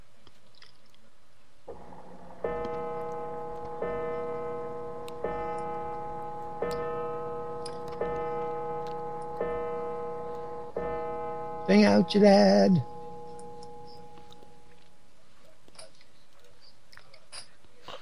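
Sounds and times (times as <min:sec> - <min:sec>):
clock bell striking the hour: 0:01.8 - 0:14.8
speech: 0:11.8 - 0:12.9.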